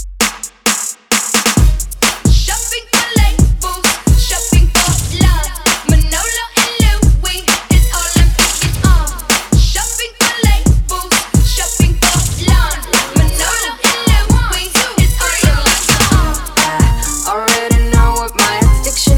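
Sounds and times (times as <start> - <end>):
throwback hip hop: 0.2 - 19.1.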